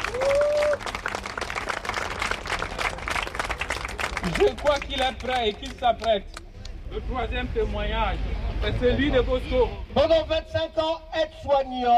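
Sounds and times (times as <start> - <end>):
audience applause: 0.0 - 5.8
speech: 4.2 - 11.9.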